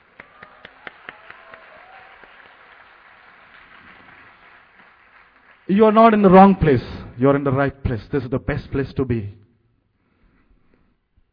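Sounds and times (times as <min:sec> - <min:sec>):
audience clapping: 0:00.0 - 0:06.4
speech: 0:05.7 - 0:09.4.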